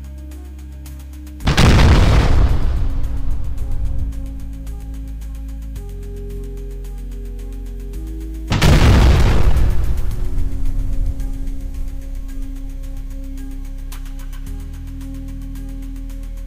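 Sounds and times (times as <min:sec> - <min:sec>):
cannon: 0:01.5 - 0:05.0, 0:08.5 - 0:13.0.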